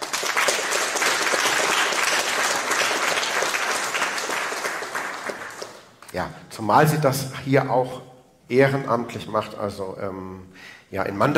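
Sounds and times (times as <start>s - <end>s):
audience applause: 0.0s - 6.0s
speech: 6.2s - 11.3s.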